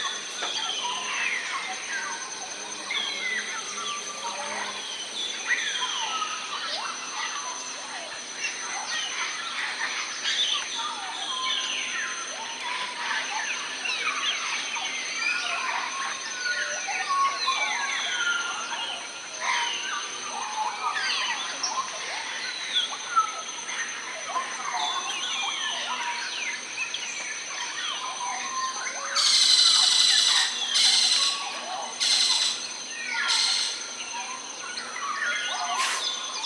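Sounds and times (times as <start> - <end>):
birds: 0.0 - 36.4.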